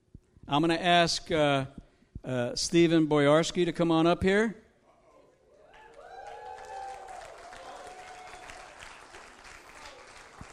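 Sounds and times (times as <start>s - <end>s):
speech: 0.5s - 4.6s
person cheering: 5.6s - 8.9s
audience clapping: 5.7s - 10.5s.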